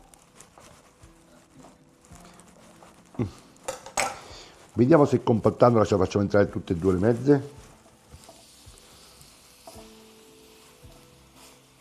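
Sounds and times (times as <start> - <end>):
meat sizzling in a frying pan: 0.0 - 11.7
speech: 3.2 - 3.5, 4.8 - 7.6
utensils clunking and tapping: 3.6 - 4.5.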